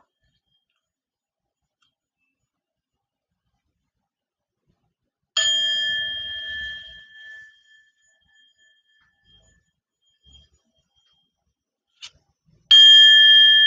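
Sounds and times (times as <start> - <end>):
Tibetan singing bowl struck and ringing: 5.4 - 9.6, 12.7 - 13.6.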